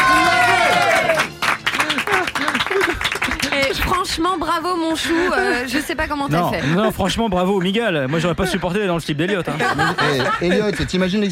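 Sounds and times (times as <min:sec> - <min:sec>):
audience applause: 0:00.0 - 0:04.1
laughter: 0:01.8 - 0:04.0, 0:04.9 - 0:11.3
speech: 0:04.3 - 0:11.3.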